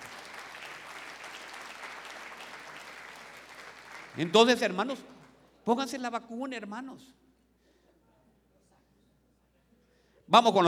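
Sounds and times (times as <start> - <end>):
audience applause: 0.0 - 4.6
speech: 4.2 - 7.2, 10.3 - 10.6.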